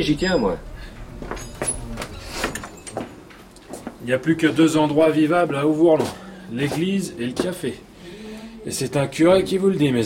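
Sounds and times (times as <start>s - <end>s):
speech: 0.0s - 1.4s, 4.0s - 7.9s, 8.6s - 10.0s
door being closed: 0.0s - 3.8s.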